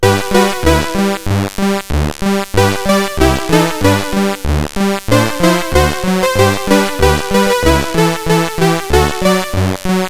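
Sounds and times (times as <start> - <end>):
chiptune melody on CSG8580 chip: 0.0 - 10.0.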